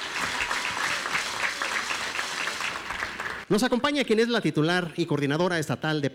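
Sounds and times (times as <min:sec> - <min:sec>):
audience applause: 0:00.0 - 0:03.5
speech: 0:03.5 - 0:06.1.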